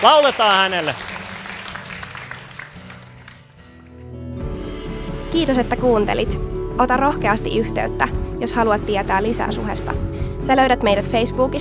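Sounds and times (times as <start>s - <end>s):
speech: 0.0s - 1.1s, 5.3s - 11.6s
audience applause: 0.0s - 3.6s.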